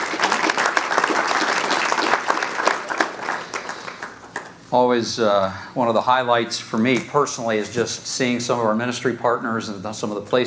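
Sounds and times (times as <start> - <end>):
crowd clapping: 0.0 - 4.7
speech: 4.7 - 10.4.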